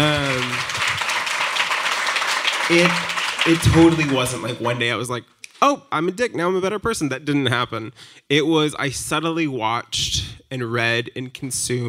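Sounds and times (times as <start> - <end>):
clapping: 0.0 - 4.9
speech: 2.7 - 11.8.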